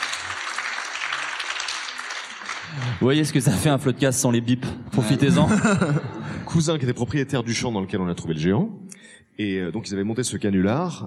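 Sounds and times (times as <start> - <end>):
live audience applause at a public podcast recording at a festival: 0.0 - 3.4
speech: 2.7 - 11.0
laughter: 4.9 - 6.8.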